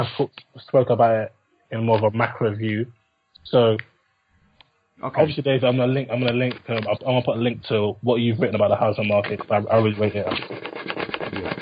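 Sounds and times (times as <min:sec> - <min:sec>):
speech: 0:00.0 - 0:03.9, 0:05.0 - 0:11.6
rasping sawing-like noise: 0:09.1 - 0:11.6.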